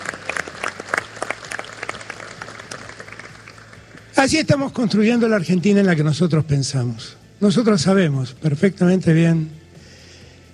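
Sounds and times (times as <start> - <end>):
audience applause: 0.0 - 4.1
speech: 4.2 - 9.6.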